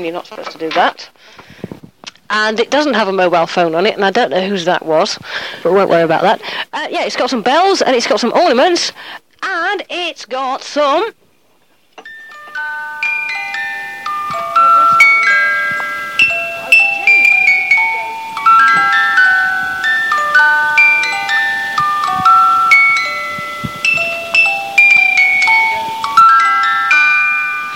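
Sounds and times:
speech: 0.0 - 1.6, 2.3 - 11.2
musical box playing: 12.0 - 27.7.

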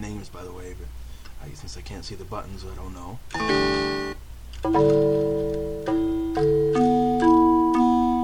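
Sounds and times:
speech: 0.2 - 5.5
vibraphone notes played on a keyboard: 3.4 - 8.2.

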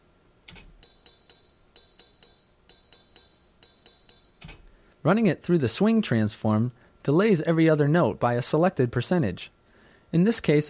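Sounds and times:
straight eighth-note ride cymbal part: 0.8 - 4.8
speech: 5.0 - 10.6.

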